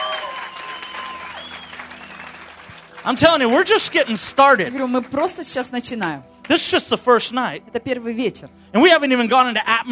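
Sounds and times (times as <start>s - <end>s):
audience hand clapping: 0.0s - 6.6s
speech: 3.0s - 9.8s.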